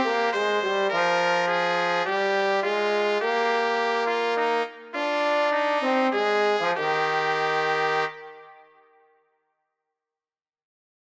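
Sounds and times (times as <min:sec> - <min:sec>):
trombone: 0:00.0 - 0:08.3
trumpets: 0:00.0 - 0:09.0.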